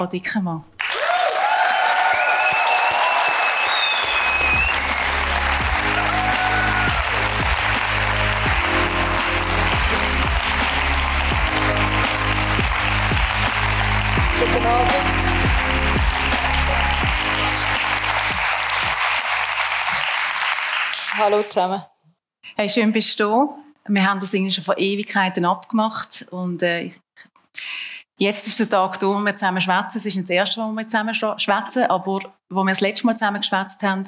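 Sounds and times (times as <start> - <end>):
speech: 0.0 - 0.7, 21.2 - 21.9, 22.6 - 27.4, 28.2 - 34.0
audience applause: 0.8 - 21.6.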